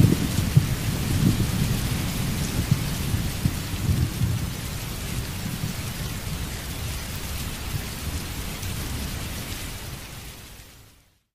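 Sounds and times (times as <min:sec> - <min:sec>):
thunder: 0:00.0 - 0:05.9
rain: 0:00.0 - 0:11.3.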